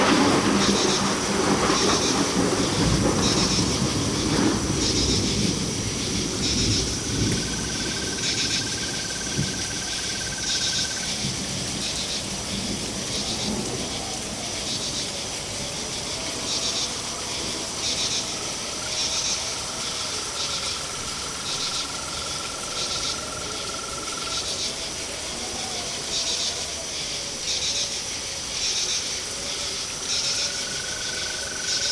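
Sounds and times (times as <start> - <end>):
storm: 0.0 - 27.6
crickets chirping: 0.0 - 31.8.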